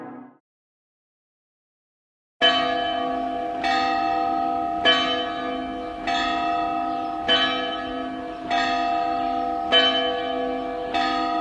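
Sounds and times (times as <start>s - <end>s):
clock chimes striking: 2.4s - 11.4s.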